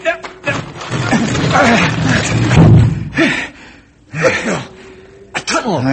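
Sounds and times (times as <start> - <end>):
straining grunts and voices: 0.4 - 5.9
heavy rock trap door swinging open: 0.5 - 3.1.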